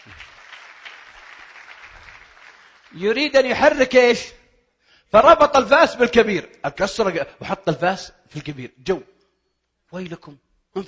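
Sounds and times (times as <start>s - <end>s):
audience applause: 0.0s - 3.1s
speech: 2.9s - 4.4s, 5.1s - 9.1s, 9.9s - 10.8s.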